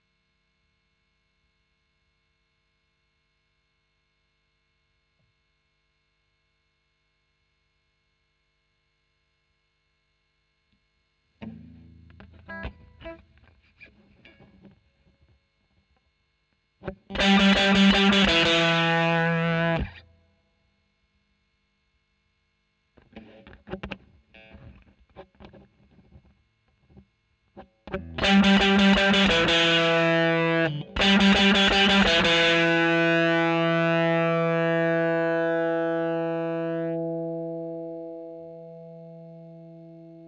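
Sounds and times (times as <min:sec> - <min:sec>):
overdriven electric guitar recorded with a Royer microphone: 0:11.4 - 0:15.9, 0:16.8 - 0:20.2, 0:23.0 - 0:40.2.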